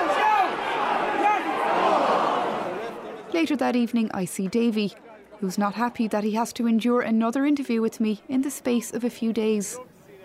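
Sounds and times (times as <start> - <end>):
crowd cheering at a hurling match: 0.0 - 6.4
speech: 3.4 - 9.9.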